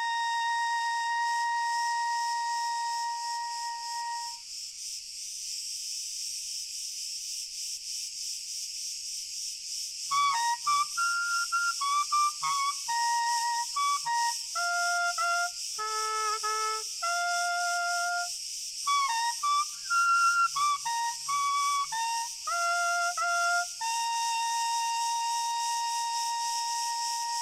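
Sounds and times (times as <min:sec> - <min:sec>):
crickets in chorus with dense high continuous trilling: 0:00.0 - 0:27.4.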